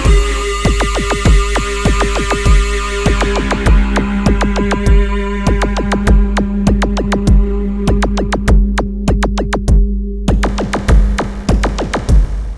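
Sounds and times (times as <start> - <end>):
music: 0.0 - 12.5.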